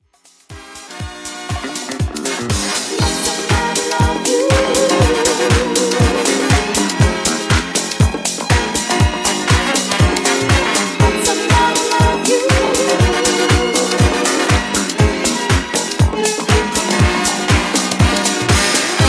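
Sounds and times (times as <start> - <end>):
80s drum machine beat at 120 bpm: 0.1 - 19.0.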